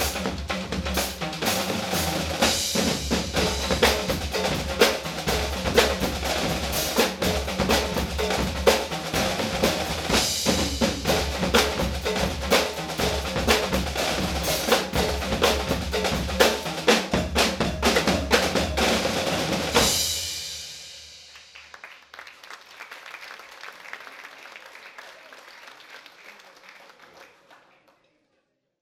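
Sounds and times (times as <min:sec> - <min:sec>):
groove music: 0:00.0 - 0:20.3.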